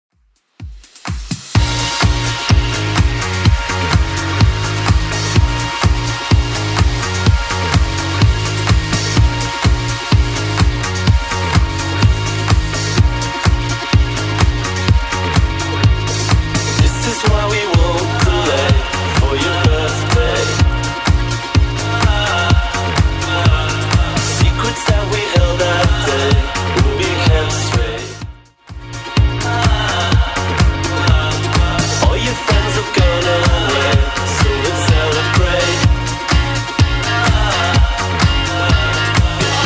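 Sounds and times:
80s club music: 0:00.4 - 0:39.6.

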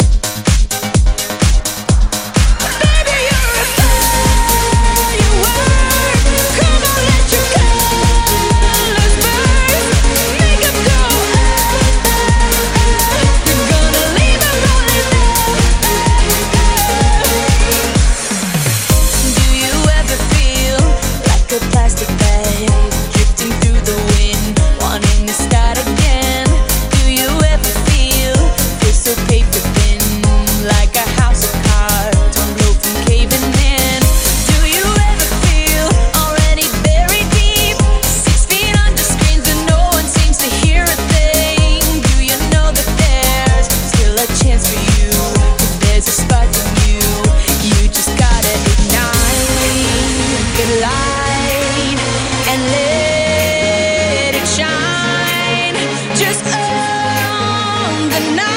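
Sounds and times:
hype music in B flat minor: 0:00.0 - 0:58.5.

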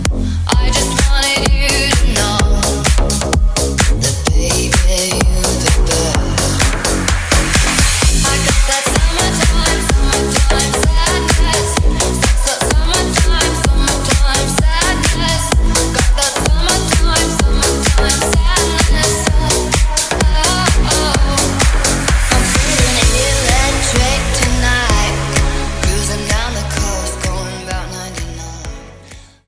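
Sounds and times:
music track at 128 bpm in D flat minor: 0:00.0 - 0:29.4.

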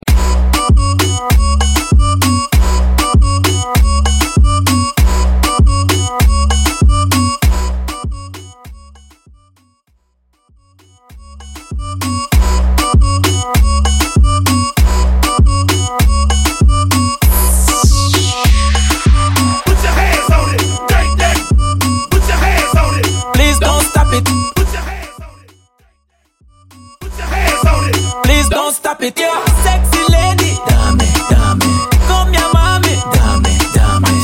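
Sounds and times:
hype intro extended mix at 98 bpm: 0:00.0 - 0:09.2, 0:10.8 - 0:25.6, 0:26.6 - 0:34.2.

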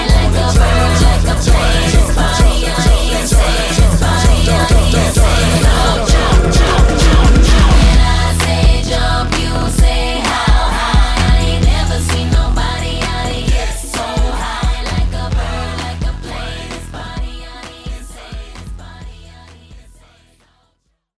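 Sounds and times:
clean drum beat: 0:00.0 - 0:16.3.

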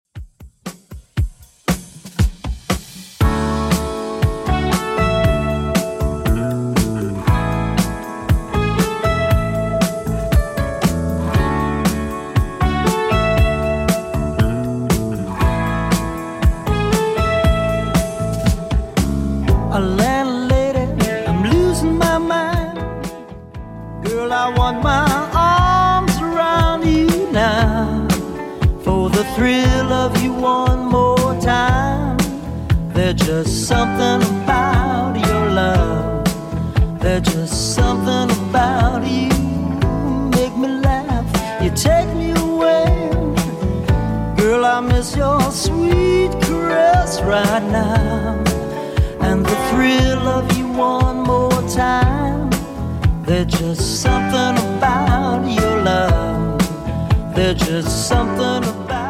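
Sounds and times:
80s style music at 118 bpm: 0:00.1 - 0:59.0.

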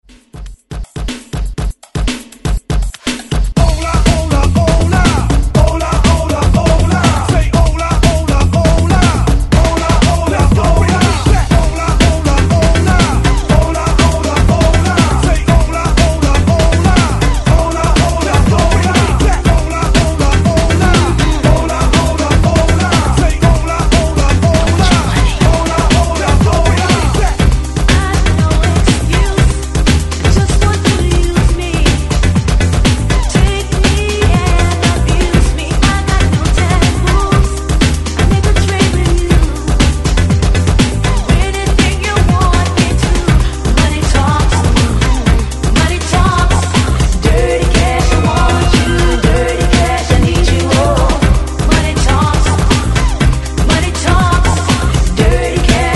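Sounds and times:
1990s hype dance music: 0:00.0 - 0:55.9.

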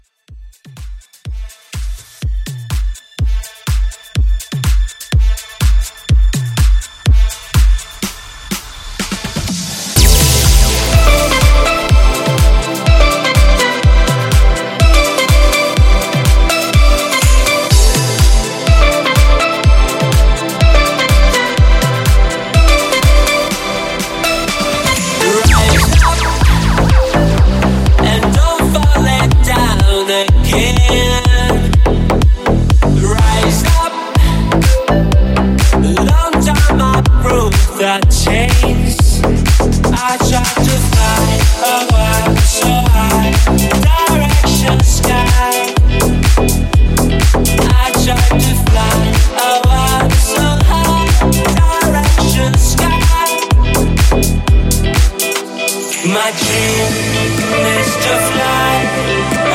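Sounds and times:
house music outro at 124 BPM: 0:00.0 - 0:59.5.

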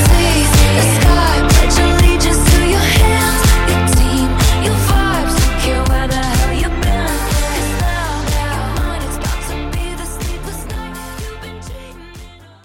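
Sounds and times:
drum beat: 0:00.0 - 0:08.9.

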